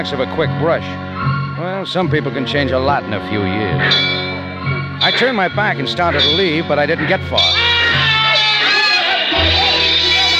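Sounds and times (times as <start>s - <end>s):
speech: 0.0s - 4.2s, 5.0s - 8.1s
crowd shouting wildly: 3.8s - 10.3s.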